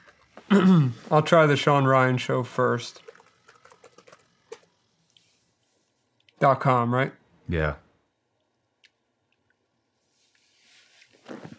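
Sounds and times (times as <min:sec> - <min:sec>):
speech: 0:00.5 - 0:03.0, 0:06.4 - 0:07.8
typing an email on a computer keyboard: 0:03.0 - 0:04.7.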